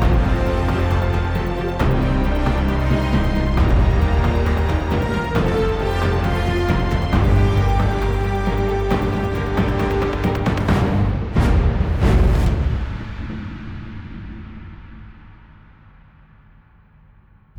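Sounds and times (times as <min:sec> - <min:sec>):
forest battle music: 0:00.0 - 0:13.1.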